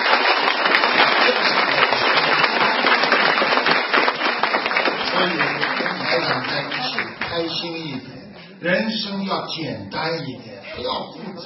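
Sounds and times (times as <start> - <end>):
audience applause: 0.0 - 8.0
speech: 7.4 - 11.4.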